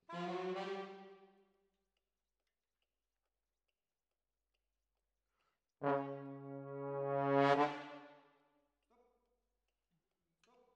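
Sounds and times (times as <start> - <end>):
trombones: 0.0 - 1.3, 5.8 - 8.2.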